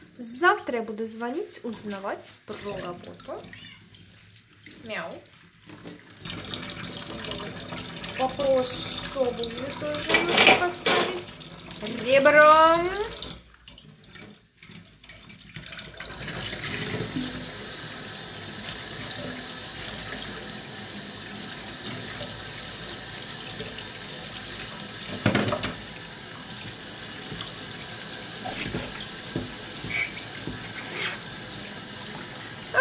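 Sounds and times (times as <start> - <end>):
tap water running into a sink: 0.0 - 32.7
speech: 0.2 - 3.8, 4.8 - 6.6, 8.2 - 13.3
dishes clinking while washed: 10.0 - 11.3.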